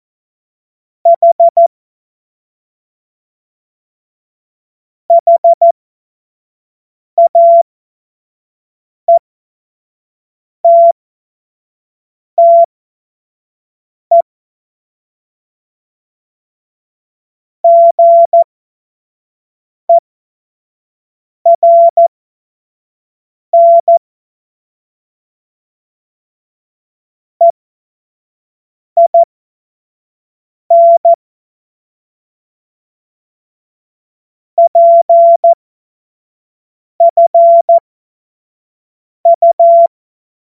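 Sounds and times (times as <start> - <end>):
morse code beeps: 1.1 - 1.7, 5.1 - 5.7, 7.2 - 7.6, 10.7 - 11.0, 12.4 - 12.7, 17.7 - 18.5, 21.5 - 22.1, 23.6 - 24.0, 29.0 - 29.3, 30.7 - 31.2, 34.6 - 35.6, 37.0 - 37.8, 39.3 - 39.9.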